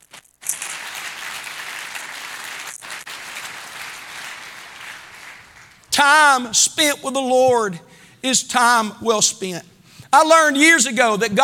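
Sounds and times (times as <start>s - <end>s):
audience clapping hands: 0.0s - 6.4s
speech: 6.0s - 11.4s.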